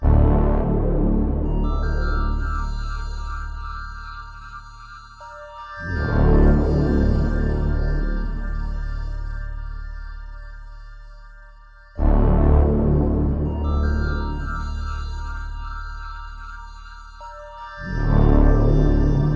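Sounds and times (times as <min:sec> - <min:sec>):
ominous electronic music loops: 0:00.0 - 0:19.3.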